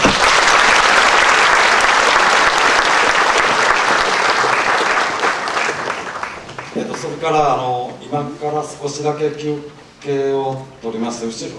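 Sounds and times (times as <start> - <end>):
audience applause: 0.0 - 7.4
speech: 7.2 - 11.5.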